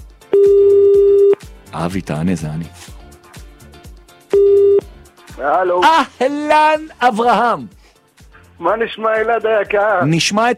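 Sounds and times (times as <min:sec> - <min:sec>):
telephone ringing tone while a call is placed: 0:00.3 - 0:01.4, 0:04.3 - 0:04.9
speech: 0:01.8 - 0:03.0, 0:05.4 - 0:07.8, 0:08.6 - 0:10.5.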